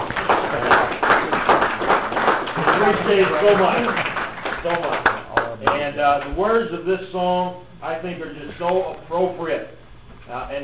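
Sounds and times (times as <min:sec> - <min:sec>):
round of applause for the speakers at a gathering: 0:00.0 - 0:06.3
speech: 0:03.1 - 0:05.0, 0:05.6 - 0:10.6.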